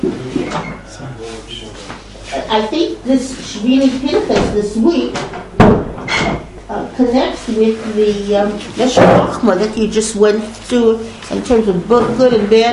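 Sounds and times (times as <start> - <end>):
speech: 2.3 - 5.5, 6.7 - 12.7
door closing thump: 4.3 - 4.6, 5.2 - 6.5.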